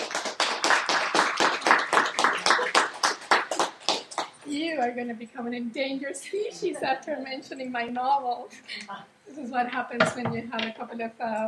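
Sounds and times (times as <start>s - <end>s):
audience applause welcoming a professor at a lecture: 0.0s - 4.4s
speech: 4.8s - 11.4s.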